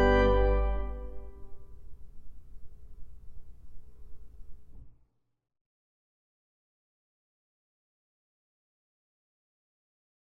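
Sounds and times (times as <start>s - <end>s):
improvised hymn duet on piano: 0.0s - 1.4s.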